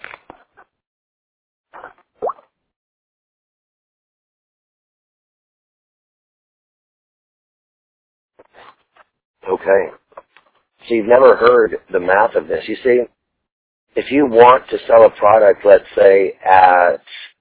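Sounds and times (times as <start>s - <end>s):
person sipping water: 1.8s - 2.4s
speech: 9.5s - 10.0s, 10.9s - 13.2s, 14.0s - 17.1s.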